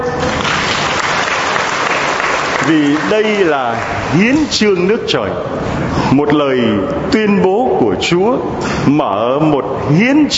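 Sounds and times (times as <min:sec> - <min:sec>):
congregation applause at a religious gathering: 0:00.0 - 0:04.7
speech: 0:02.7 - 0:10.3.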